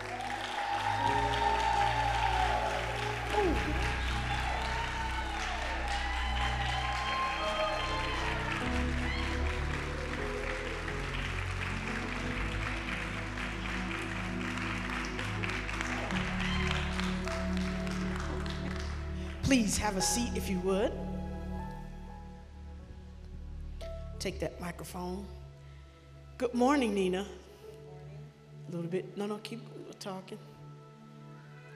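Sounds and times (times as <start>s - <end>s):
audience applauding a welcome: 0.0s - 20.4s
speech: 19.5s - 21.1s, 24.2s - 25.4s, 26.4s - 27.4s, 28.7s - 30.5s.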